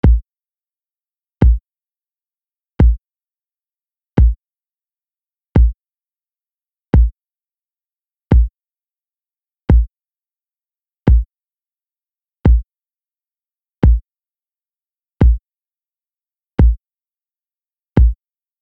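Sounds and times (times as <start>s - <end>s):
kick drum: 0.0s - 0.2s, 1.4s - 1.6s, 2.8s - 3.0s, 4.2s - 4.4s, 5.6s - 5.8s, 7.0s - 7.2s, 8.3s - 8.5s, 9.7s - 9.9s, 11.1s - 11.3s, 13.8s - 14.0s, 16.6s - 16.8s, 18.0s - 18.2s.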